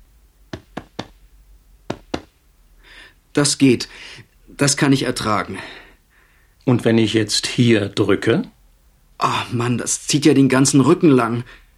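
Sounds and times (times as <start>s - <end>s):
doctor's hand tapping on patient's left flank: 0.5s - 1.2s, 1.9s - 2.4s
speech: 3.4s - 5.8s, 6.6s - 8.6s, 9.2s - 11.6s.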